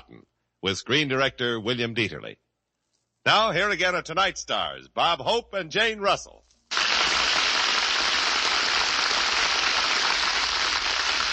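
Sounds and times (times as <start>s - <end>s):
speech: 0.6s - 2.4s, 3.2s - 6.4s
audience applause: 6.7s - 11.3s.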